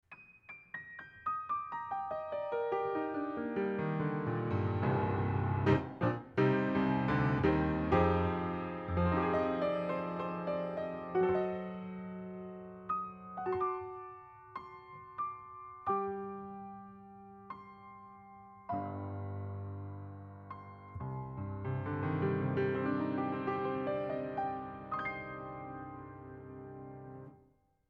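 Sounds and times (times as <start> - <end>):
piano: 0.0 - 27.8.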